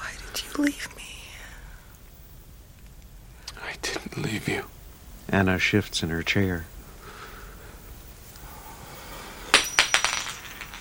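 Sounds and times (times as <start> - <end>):
speech: 0.6 - 1.0, 4.3 - 6.7
gold wedding band dropping and rolling: 9.4 - 10.7.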